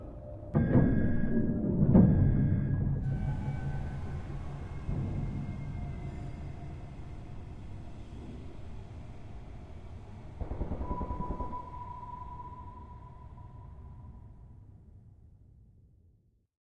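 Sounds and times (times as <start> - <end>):
alarm: 0.5 - 6.2, 10.4 - 14.3.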